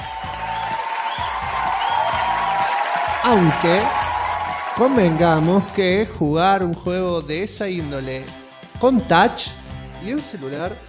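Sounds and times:
crowd applause sound effect: 0:00.0 - 0:06.0
faint cheering: 0:00.0 - 0:06.0
speech: 0:03.2 - 0:04.0, 0:04.8 - 0:10.8.

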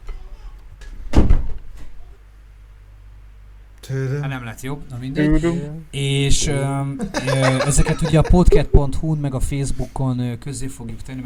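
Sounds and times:
door being closed: 0:01.1 - 0:01.9
speech: 0:03.9 - 0:11.2
laughter: 0:07.0 - 0:08.7.

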